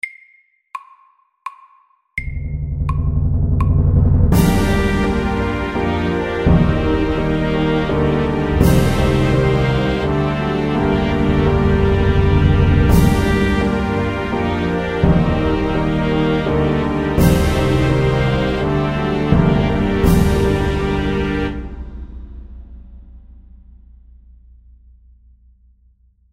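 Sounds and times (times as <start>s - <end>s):
film music: 2.2s - 23.0s.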